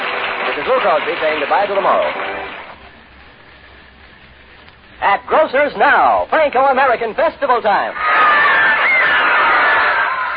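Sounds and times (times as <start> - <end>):
speech: 0.6 - 2.4, 5.0 - 8.3
crowd of women cheering in an old radio advertisement for Franco-American canned foods: 7.9 - 10.3.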